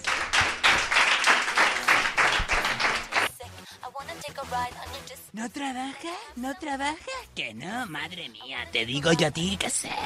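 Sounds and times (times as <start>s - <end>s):
audience applause: 0.0s - 3.3s
speech: 5.4s - 10.0s.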